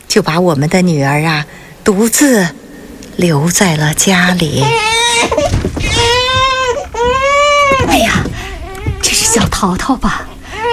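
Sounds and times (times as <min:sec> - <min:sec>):
speech: 0:00.1 - 0:02.6, 0:03.2 - 0:06.0, 0:09.3 - 0:10.3
baby crying: 0:04.6 - 0:08.0.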